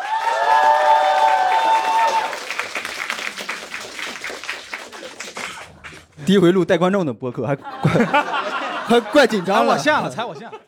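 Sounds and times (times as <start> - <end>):
audience applause: 0.0 - 6.1
speech: 6.3 - 10.6
laughter: 7.6 - 10.6.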